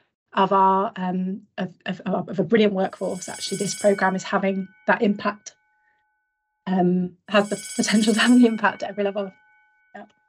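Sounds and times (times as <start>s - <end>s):
speech: 0.4s - 5.6s, 6.7s - 9.4s, 10.0s - 10.2s
bell ringing in a building: 2.8s - 5.4s, 7.3s - 9.7s.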